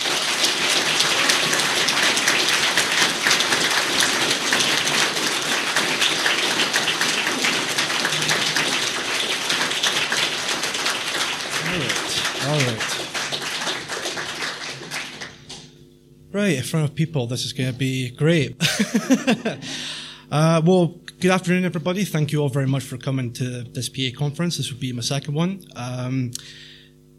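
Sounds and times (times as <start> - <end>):
crowd applauding warmly: 0.0 - 15.7
person cheering: 1.0 - 1.8, 8.0 - 8.8
laughter: 7.8 - 8.9, 18.6 - 19.9
speech: 16.4 - 26.8.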